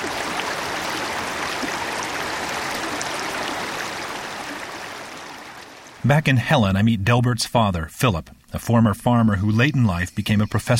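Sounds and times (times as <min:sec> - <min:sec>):
mountain stream flowing: 0:00.0 - 0:06.2
speech: 0:06.1 - 0:10.7.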